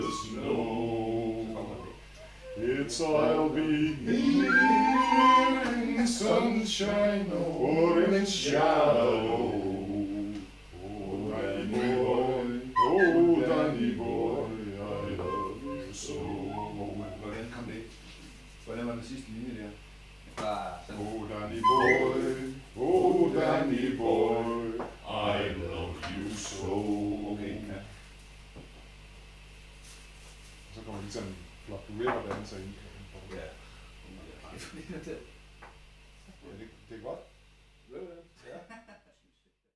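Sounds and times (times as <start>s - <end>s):
person singing a capella: 0.0s - 17.6s, 20.9s - 27.9s.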